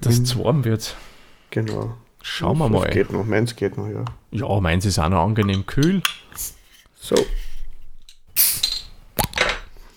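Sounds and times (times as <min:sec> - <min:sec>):
speech: 0:00.0 - 0:07.5
fizzy hiss from beer bottle: 0:08.4 - 0:08.8
beer bottle cap popping open: 0:08.4 - 0:09.6.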